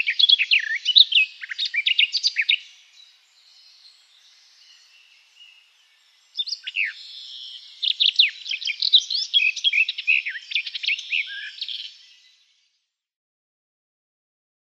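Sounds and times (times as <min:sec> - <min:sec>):
Garden Warbler song: 0:00.0 - 0:13.0.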